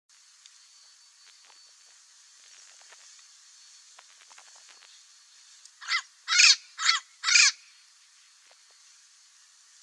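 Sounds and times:
Amazon parrot giving harsh squawks: 5.8s - 7.6s.

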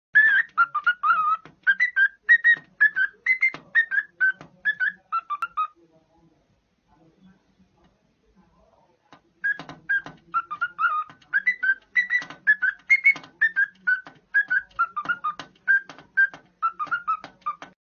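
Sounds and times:
cockatiel whistling a tune: 0.2s - 5.5s, 9.4s - 17.7s.

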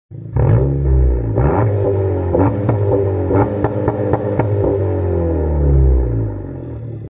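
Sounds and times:
Honda Civic exhaust: 0.1s - 7.0s.

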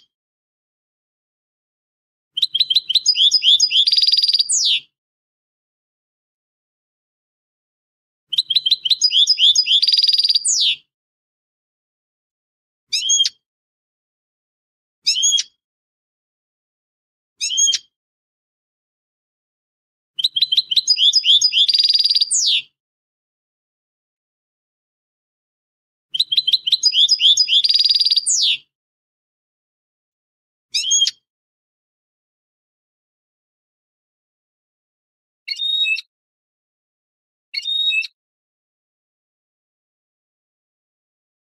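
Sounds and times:
finch song: 2.4s - 4.8s, 8.3s - 10.8s, 15.1s - 15.5s, 17.4s - 17.8s, 20.2s - 22.7s, 26.1s - 28.6s, 30.8s - 31.2s, 35.5s - 36.1s, 37.6s - 38.1s.

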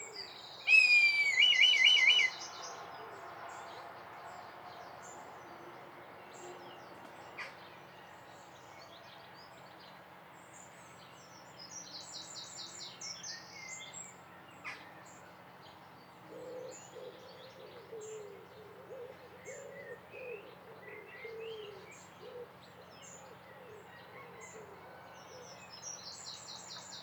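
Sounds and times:
red kite giving a wavering tremulous whistle: 0.7s - 2.3s.

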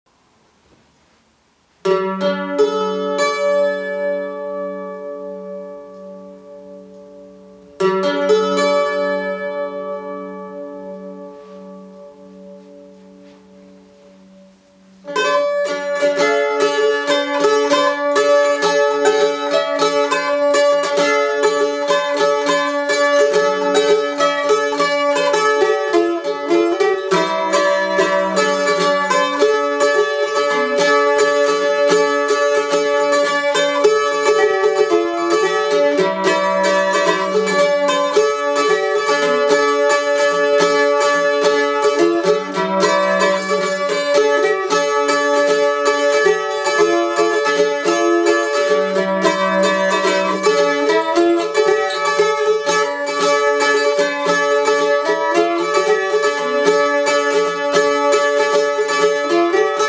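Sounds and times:
mandolin: 0.1s - 59.8s.

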